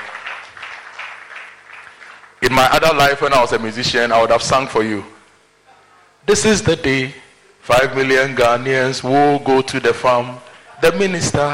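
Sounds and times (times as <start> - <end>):
audience applause: 0.0 - 2.4
speech: 2.4 - 5.2, 6.3 - 11.5.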